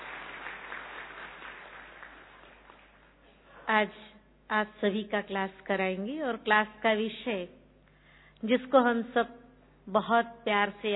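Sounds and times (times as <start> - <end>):
audience applause welcoming a speaker: 0.0 - 3.2
speech: 3.7 - 7.6, 8.4 - 10.9.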